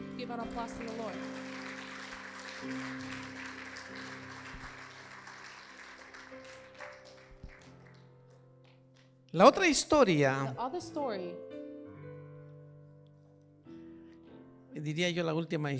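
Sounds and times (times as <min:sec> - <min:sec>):
audience applause: 0:00.0 - 0:08.2
speech: 0:00.2 - 0:01.6, 0:02.6 - 0:04.2, 0:09.3 - 0:11.6, 0:14.8 - 0:15.7.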